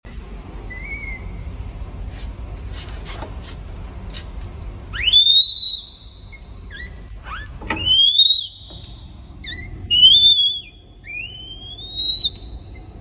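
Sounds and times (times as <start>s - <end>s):
newborn red panda cub calling with high-pitched whistles: 5.0s - 8.7s, 9.4s - 12.8s.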